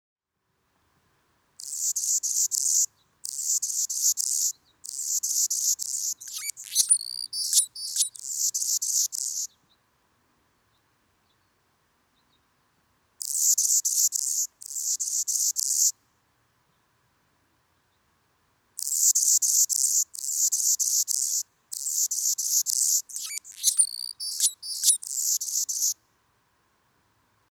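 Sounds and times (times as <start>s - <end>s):
hummingbird squeaky chirps: 1.6s - 9.5s, 18.8s - 25.9s.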